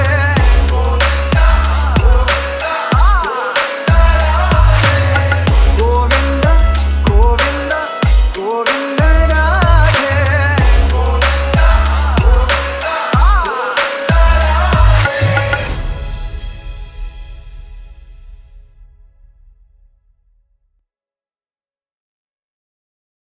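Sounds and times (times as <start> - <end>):
electronic bass remix: 0.0 - 15.8.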